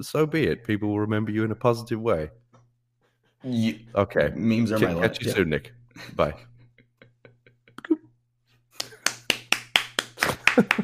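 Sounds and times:
speech: 0:00.0 - 0:02.4, 0:03.4 - 0:06.5
hand claps: 0:08.8 - 0:10.8.

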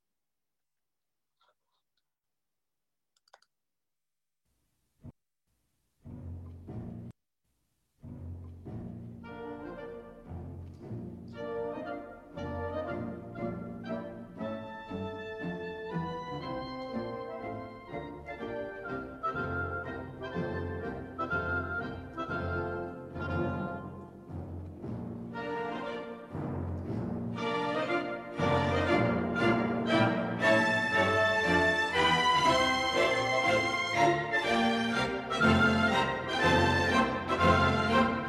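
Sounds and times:
orchestral military march: 0:08.0 - 0:38.2.

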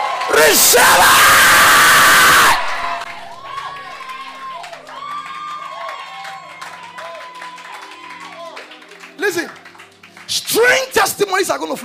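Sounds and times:
audience shouting and clapping: 0:00.0 - 0:08.6
speech: 0:00.4 - 0:01.4, 0:11.5 - 0:11.8.

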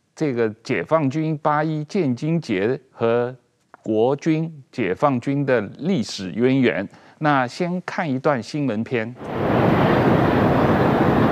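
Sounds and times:
speech: 0:00.2 - 0:09.8
J-20 fighter jet formation flying overhead: 0:09.2 - 0:11.3.

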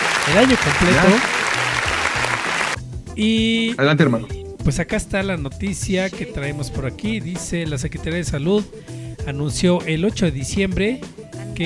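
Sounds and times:
applause: 0:00.0 - 0:02.8
speech: 0:00.3 - 0:01.4, 0:03.2 - 0:11.6.

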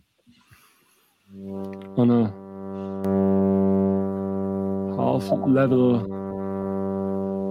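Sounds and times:
speech: 0:01.3 - 0:02.4, 0:05.2 - 0:06.2
synthesizer sawtooth drone through filter: 0:01.4 - 0:07.4.

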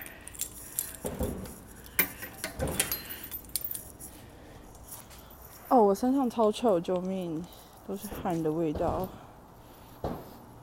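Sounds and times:
keys jangling: 0:00.0 - 0:05.9
speech: 0:05.9 - 0:09.2.

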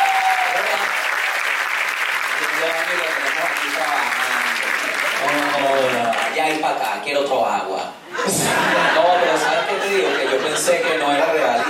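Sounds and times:
applause: 0:00.0 - 0:06.4
speech: 0:02.9 - 0:11.6
laughter: 0:08.1 - 0:11.6.

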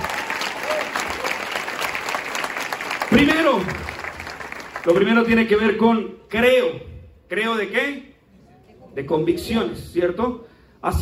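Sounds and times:
audience applause: 0:00.0 - 0:05.0
speech: 0:03.1 - 0:03.9, 0:04.8 - 0:08.1, 0:09.0 - 0:11.0.

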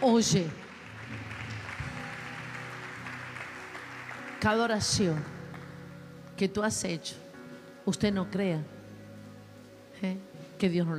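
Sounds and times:
Spanish-speaking church congregation applauding praising God: 0:00.0 - 0:05.8
music playing: 0:00.0 - 0:10.9
speech: 0:00.1 - 0:01.2, 0:04.4 - 0:05.4, 0:06.4 - 0:07.2, 0:07.9 - 0:08.7, 0:10.0 - 0:10.9.

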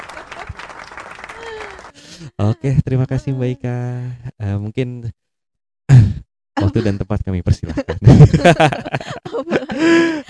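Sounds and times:
applause for a guest: 0:00.0 - 0:02.3
laughter: 0:00.0 - 0:03.6, 0:06.6 - 0:10.2
speech: 0:02.2 - 0:05.2, 0:05.9 - 0:10.2.

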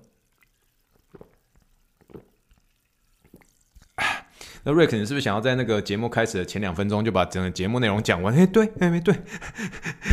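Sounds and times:
sparkling water being poured: 0:00.0 - 0:06.0
speech: 0:04.6 - 0:10.1.

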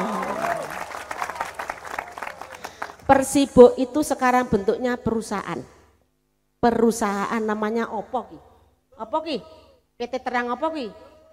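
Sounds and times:
audience clapping: 0:00.0 - 0:03.1
speech: 0:03.1 - 0:05.8, 0:06.6 - 0:11.1.

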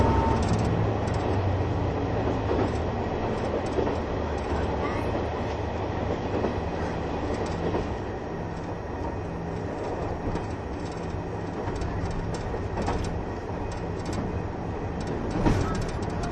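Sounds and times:
KiHa 71 Yufuin no Mori diesel train running between Hita and Yufuin: 0:00.0 - 0:16.3.

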